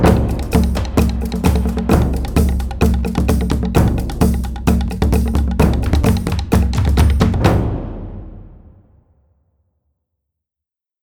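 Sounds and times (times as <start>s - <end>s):
Hawaiian adventure percussion music: 0.0s - 8.8s.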